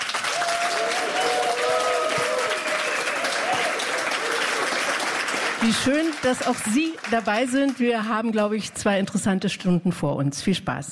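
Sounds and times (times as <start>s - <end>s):
audience applause: 0.0s - 8.0s
cheers and whistles: 0.3s - 4.8s
speech: 5.6s - 10.8s.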